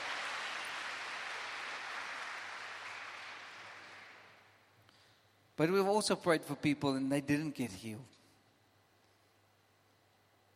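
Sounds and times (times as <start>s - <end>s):
crowd applauding: 0.0s - 4.6s
speech: 5.6s - 8.2s.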